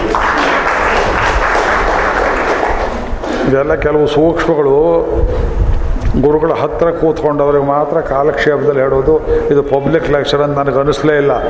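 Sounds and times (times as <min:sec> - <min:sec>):
audience applause at a public lecture on the Katha Upanishad: 0:00.0 - 0:03.4
speech: 0:03.5 - 0:11.4.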